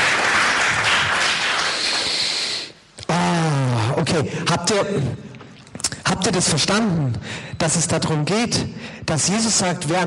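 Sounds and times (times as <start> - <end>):
audience applause: 0.0 - 2.6
speech: 4.1 - 5.3, 6.1 - 10.0.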